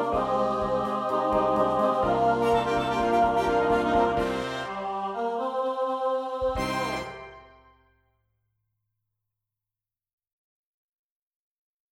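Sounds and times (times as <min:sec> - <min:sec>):
SATB four-part choir singing: 0:00.0 - 0:07.8.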